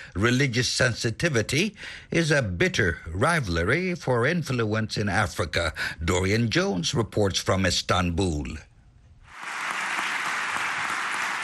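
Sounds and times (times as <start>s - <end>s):
speech: 0.2s - 8.7s
applause from parliamentary deputies: 9.3s - 11.4s.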